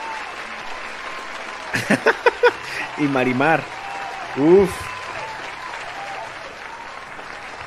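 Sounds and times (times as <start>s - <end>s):
applause sound effect: 0.0s - 7.6s
laughter: 1.6s - 3.4s
speech: 3.0s - 3.8s, 4.4s - 4.9s.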